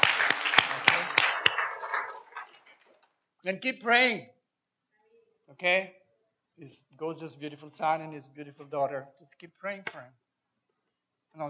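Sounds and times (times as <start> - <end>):
audience clapping: 0.0 - 2.8
speech: 3.4 - 4.4, 5.5 - 6.0, 6.6 - 10.2.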